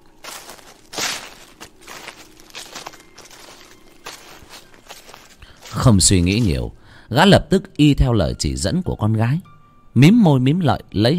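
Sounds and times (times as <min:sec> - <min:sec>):
footsteps crunching through dry leaves outdoors: 0:00.0 - 0:06.8
speech: 0:05.8 - 0:11.1.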